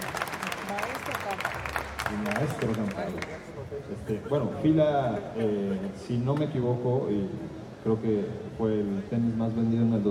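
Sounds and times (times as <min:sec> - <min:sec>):
applause: 0:00.0 - 0:03.5
speech: 0:02.1 - 0:10.1.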